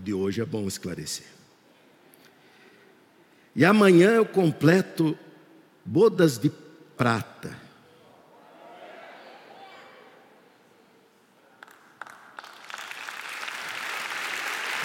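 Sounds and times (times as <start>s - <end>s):
speech: 0.1s - 1.4s, 3.6s - 5.2s, 5.8s - 7.6s
audience applause: 11.6s - 14.8s.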